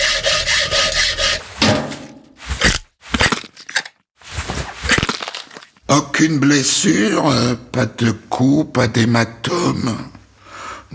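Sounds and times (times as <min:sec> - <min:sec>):
saw cutting open a rib cage: 0:00.0 - 0:03.5
speech: 0:05.9 - 0:10.2.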